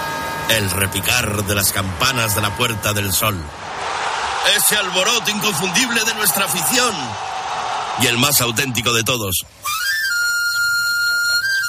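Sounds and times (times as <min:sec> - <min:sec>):
speech: 0:00.5 - 0:07.4, 0:08.0 - 0:09.8
knife sharpener's whistle: 0:09.6 - 0:11.6.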